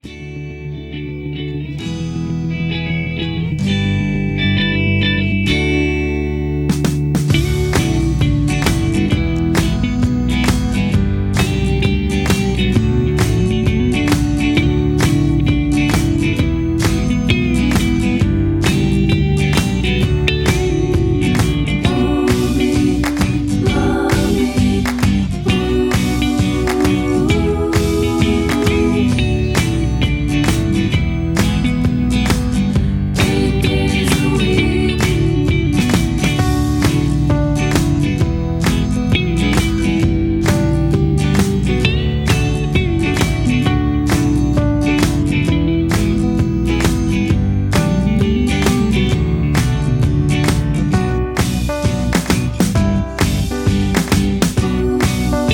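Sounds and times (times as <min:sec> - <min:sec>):
instrumental with leads: 0:00.0 - 0:55.5
background vocals: 0:20.5 - 0:30.1, 0:33.1 - 0:36.4, 0:54.5 - 0:55.5.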